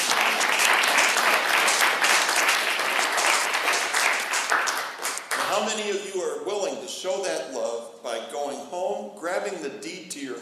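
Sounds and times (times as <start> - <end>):
audience applauding: 0.0 - 5.8
speech: 5.6 - 10.4.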